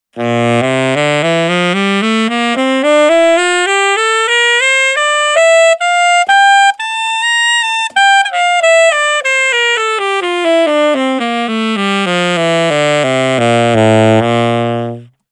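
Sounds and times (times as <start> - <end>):
bright short scale: 0.2 - 15.2.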